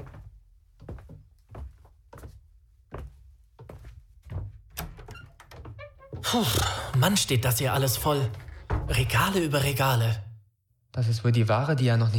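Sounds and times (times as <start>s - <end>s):
footsteps on hard floor: 0.0s - 9.4s
door opening into back room: 4.7s - 10.0s
speech: 6.3s - 10.2s, 11.0s - 12.1s.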